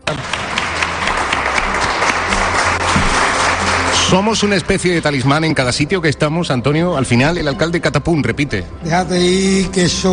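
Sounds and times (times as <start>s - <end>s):
audience applauding: 0.0s - 5.4s
speech: 4.1s - 10.1s.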